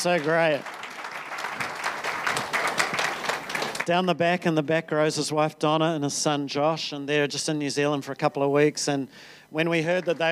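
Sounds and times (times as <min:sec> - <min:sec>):
speech: 0:00.0 - 0:00.8, 0:02.4 - 0:02.6, 0:03.9 - 0:10.2
audience applause welcoming a guest: 0:00.0 - 0:03.9, 0:09.9 - 0:10.2.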